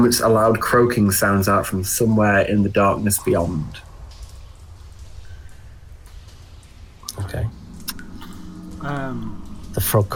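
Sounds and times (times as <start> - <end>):
speech: 0.0 - 3.8, 8.8 - 10.1
water dripping from stalactites into a pool: 0.0 - 10.1
brief thin tone: 7.1 - 10.1
low steady rumble: 7.1 - 10.1.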